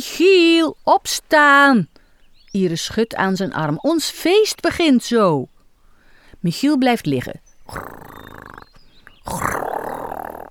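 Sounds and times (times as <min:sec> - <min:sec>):
speech: 0:00.0 - 0:01.9, 0:02.6 - 0:05.5, 0:06.4 - 0:08.7, 0:09.3 - 0:09.7
loud rough snoring: 0:07.7 - 0:08.6, 0:09.3 - 0:10.4.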